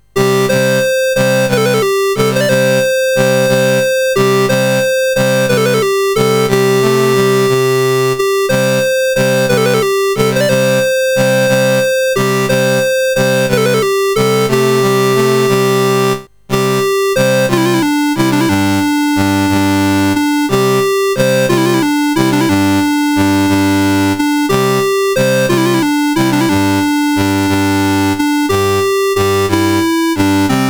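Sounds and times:
national anthem on CSG 8580 chip: 0:00.0 - 0:30.6.

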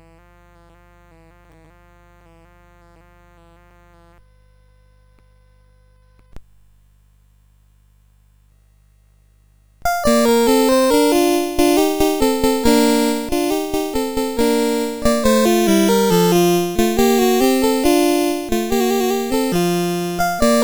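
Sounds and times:
allegro in B flat major on CSG8580R5 chip: 0:09.9 - 0:20.6.

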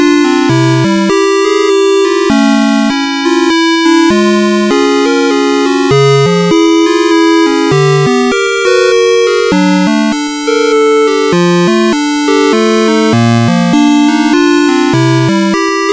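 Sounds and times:
music box on a CSG8580R5 sound chip: 0:00.0 - 0:15.9.

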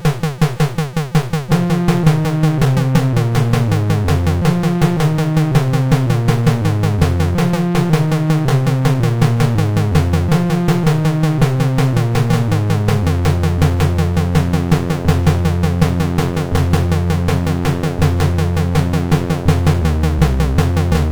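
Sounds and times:
MOS6581R3 chip kick drums: 0:00.0 - 0:21.0.

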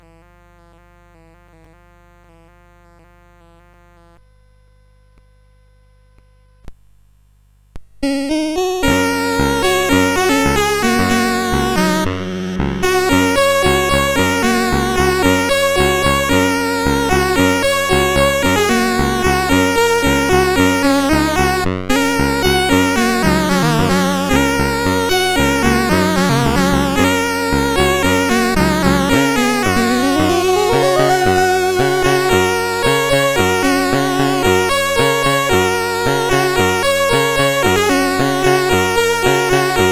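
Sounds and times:
honky tonk chiptune music on a CSG8580R5: 0:08.0 - 0:39.9.

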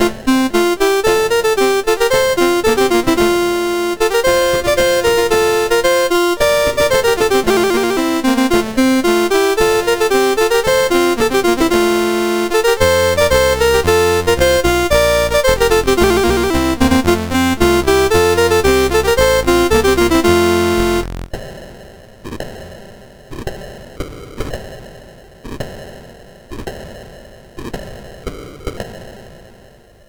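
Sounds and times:
music on MOS6581R4 sound chip: 0:00.0 - 0:21.3.

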